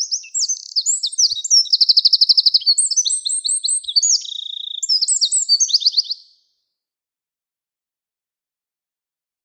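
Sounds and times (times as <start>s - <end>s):
Eurasian wren song with twittering and rattling trills: 0.0s - 6.6s.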